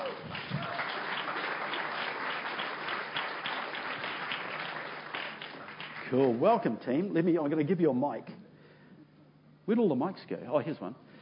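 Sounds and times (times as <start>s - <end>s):
crowd applauding a counsellor: 0.0s - 6.7s
speech: 6.1s - 8.4s, 9.7s - 11.0s.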